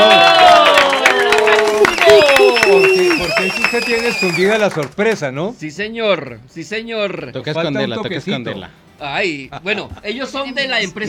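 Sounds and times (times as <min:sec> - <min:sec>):
whoops and raised voices: 0:00.0 - 0:04.5
studio audience applauding: 0:00.0 - 0:05.2
speech: 0:03.8 - 0:11.0.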